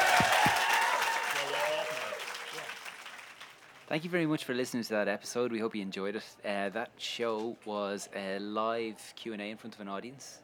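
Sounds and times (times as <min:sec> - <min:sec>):
audience round of applause: 0:00.0 - 0:03.8
speech: 0:03.9 - 0:10.4.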